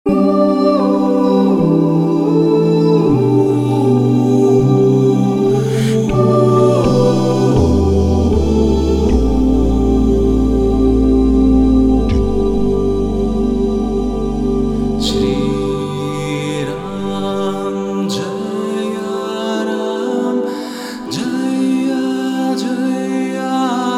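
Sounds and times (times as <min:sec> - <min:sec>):
a cappella kirtan mantra chanting: 0:00.0 - 0:23.9.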